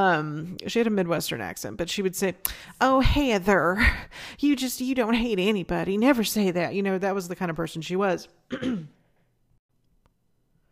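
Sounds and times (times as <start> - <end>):
speech: 0.0 - 9.0
throat clearing: 8.5 - 9.1.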